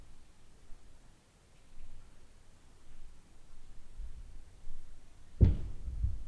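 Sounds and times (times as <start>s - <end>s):
upstairs noise at night: 4.0s - 6.2s.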